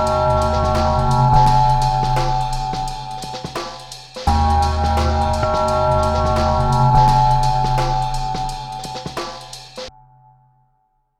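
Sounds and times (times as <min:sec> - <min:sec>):
creepy Halloween music: 0:00.0 - 0:09.9.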